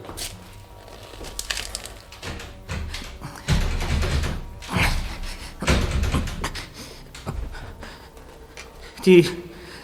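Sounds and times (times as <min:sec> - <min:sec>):
door handle rattling: 0:00.8 - 0:08.8
locked door thudding and clanking: 0:00.9 - 0:08.0
speech: 0:09.0 - 0:09.4.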